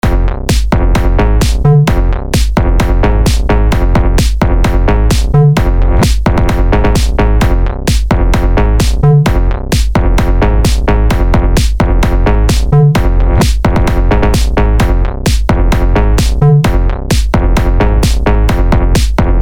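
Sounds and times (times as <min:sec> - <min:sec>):
funk house beat with bass: 0:00.0 - 0:19.4.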